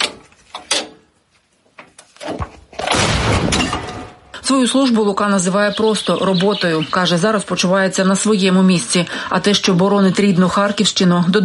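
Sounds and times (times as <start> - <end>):
artillery gun firing a shot: 2.8 - 4.4
speech: 4.5 - 11.4.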